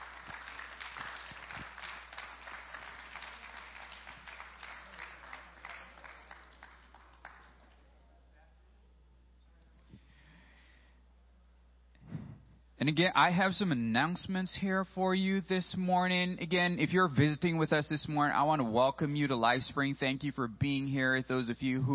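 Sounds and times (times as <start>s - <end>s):
audience applause: 0.0s - 7.9s
speech: 12.8s - 21.9s.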